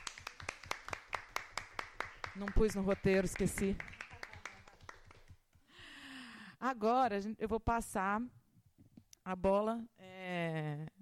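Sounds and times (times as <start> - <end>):
audience applause: 0.0 - 2.6, 3.2 - 5.3
speech: 2.4 - 3.9, 6.6 - 8.4, 9.3 - 10.1.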